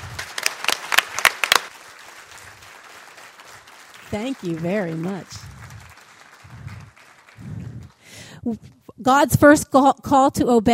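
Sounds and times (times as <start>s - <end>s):
round of applause for actors: 0.0s - 8.3s
speech: 4.1s - 5.5s, 8.4s - 10.7s.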